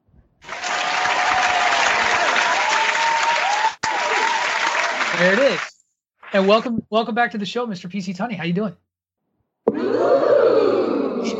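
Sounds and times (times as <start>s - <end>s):
live studio audience applauding for a show taping: 0.4s - 6.6s
speech: 5.2s - 5.7s, 6.3s - 8.8s, 9.9s - 11.3s.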